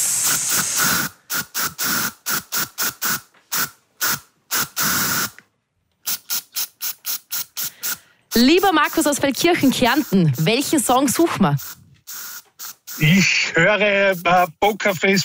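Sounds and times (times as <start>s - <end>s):
deodorant spray can hissing: 0.0s - 5.4s, 6.0s - 13.2s
speech: 0.3s - 1.0s, 8.4s - 11.8s, 13.0s - 15.2s.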